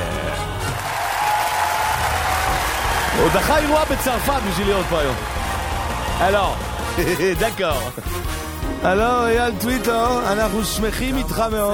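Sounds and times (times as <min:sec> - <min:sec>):
audience applause: 0:00.6 - 0:07.5
speech: 0:03.2 - 0:05.4, 0:06.2 - 0:11.7.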